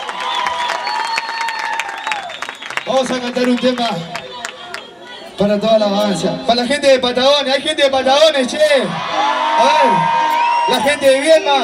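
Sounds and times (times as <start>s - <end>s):
crowd clapping for a street cumbia band: 0.0s - 5.0s, 9.2s - 11.6s
speech: 2.9s - 4.2s, 5.4s - 11.6s
crowd voices: 3.4s - 7.7s, 8.3s - 11.6s.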